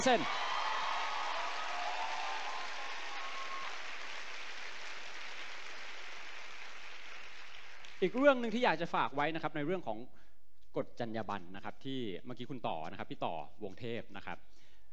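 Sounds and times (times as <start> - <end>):
speech: 0.0 - 0.4, 8.0 - 10.2, 10.8 - 14.6
faint voices cheering: 0.0 - 3.9
audience applauding: 0.0 - 8.3.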